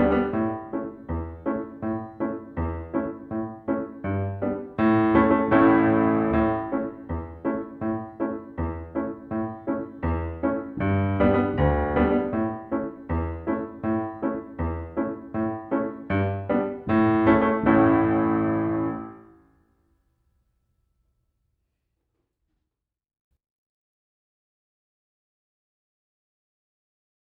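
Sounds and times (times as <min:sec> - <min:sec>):
piano accompaniment: 0:00.0 - 0:19.6.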